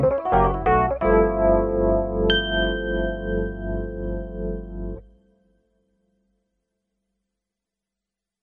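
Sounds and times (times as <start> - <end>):
Nord Stage keyboard playing: 0.0 - 5.0.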